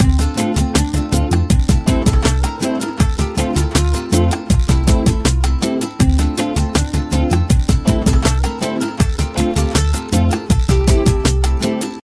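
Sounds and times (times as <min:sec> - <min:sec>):
latin music loop ringtone: 0:00.0 - 0:12.0.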